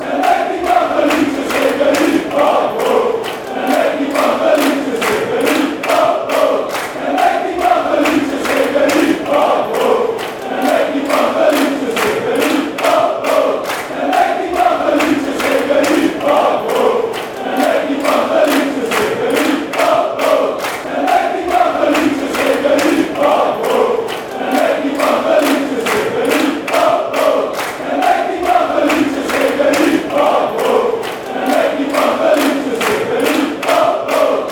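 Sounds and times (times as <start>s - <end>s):
fans chanting a song: 0.0s - 34.5s.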